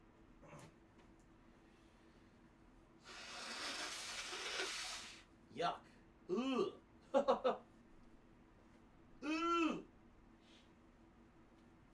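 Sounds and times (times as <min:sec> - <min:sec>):
person blowing nose: 0:03.0 - 0:05.2
speech: 0:05.6 - 0:07.7.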